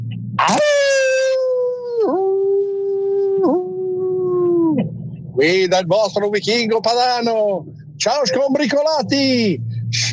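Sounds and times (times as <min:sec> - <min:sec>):
man imitating a dog howl: 0:00.4 - 0:04.8
speech: 0:05.4 - 0:10.1.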